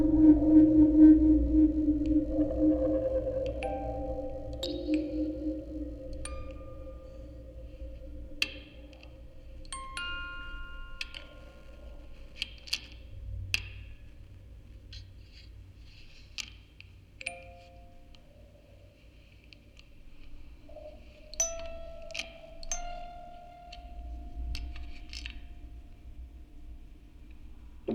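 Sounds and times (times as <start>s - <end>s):
field recording ambience: 0.0s - 27.9s
quartet of music boxes playing: 2.9s - 12.5s, 20.8s - 25.8s.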